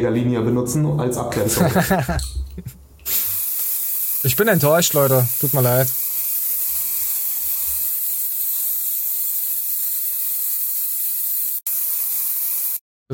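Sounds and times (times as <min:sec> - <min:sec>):
speech: 0:00.0 - 0:02.8, 0:04.2 - 0:06.0
laughter: 0:01.4 - 0:02.8
carnival hair spray being sprayed: 0:03.0 - 0:12.8.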